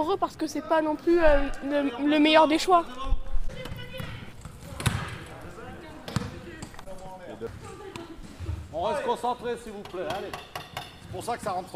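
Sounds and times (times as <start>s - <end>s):
speech: 0.0s - 3.7s, 8.8s - 10.5s, 11.1s - 11.7s
basketball bouncing on a court during wheelchair basketball: 3.5s - 5.3s, 6.1s - 6.7s.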